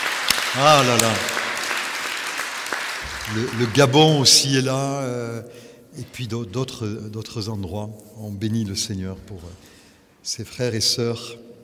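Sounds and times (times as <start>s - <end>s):
church audience applause: 0.0s - 4.4s
speech: 0.5s - 1.3s, 3.2s - 11.5s.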